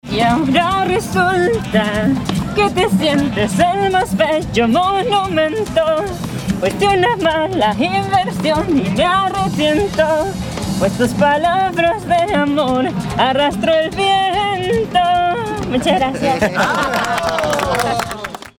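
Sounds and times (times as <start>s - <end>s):
person singing a song: 0.0s - 16.2s
laughter: 15.6s - 18.5s.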